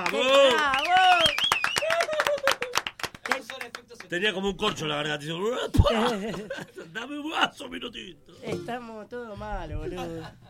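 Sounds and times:
speech: 0:00.0 - 0:00.8, 0:04.1 - 0:10.4
hosts whooping and calling out: 0:00.0 - 0:02.8
small group of hosts clapping for themselves: 0:00.0 - 0:04.4
laughter: 0:05.6 - 0:07.4, 0:09.8 - 0:10.4.

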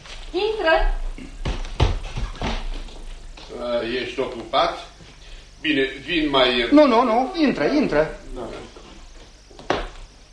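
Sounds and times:
faint steady hiss: 0:00.0 - 0:10.3
knocking on a door: 0:01.4 - 0:02.6
speech: 0:03.8 - 0:04.9, 0:05.6 - 0:08.6.

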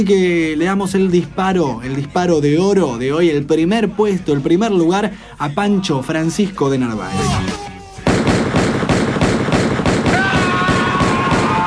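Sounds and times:
speech: 0:00.0 - 0:07.6
person screaming after being hit: 0:07.0 - 0:08.1, 0:10.1 - 0:11.6
rapid gunfire from toy guns: 0:08.1 - 0:11.6.

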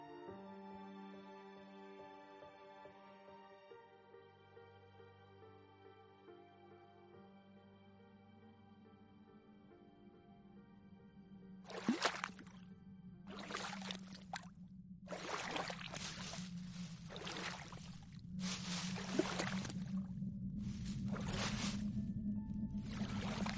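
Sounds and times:
small boat carrying four people gliding on a calm river in Vietnam's western region: 0:11.6 - 0:23.5
light waves lapping toward the bank: 0:11.7 - 0:12.6, 0:13.3 - 0:14.5, 0:15.1 - 0:22.0, 0:22.8 - 0:23.5
water sloshing and splashing from paddles dipping: 0:11.7 - 0:12.6, 0:13.3 - 0:22.0, 0:22.7 - 0:23.5.

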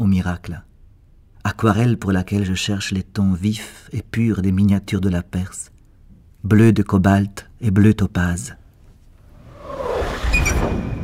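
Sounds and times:
speech: 0:00.0 - 0:00.7, 0:01.4 - 0:05.7, 0:06.4 - 0:08.6
rocket's rapid hiss swelling into a rushing whoosh: 0:09.2 - 0:11.0.

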